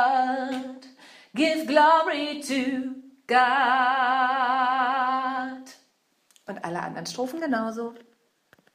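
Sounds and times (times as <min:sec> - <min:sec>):
soprano section of a gospel choir singing: 0:00.0 - 0:05.8.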